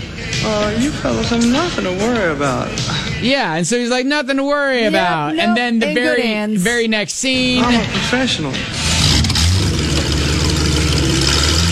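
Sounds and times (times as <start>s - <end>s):
speech: 0.4s - 8.9s
car engine roaring as the car drives off quickly: 7.3s - 11.7s.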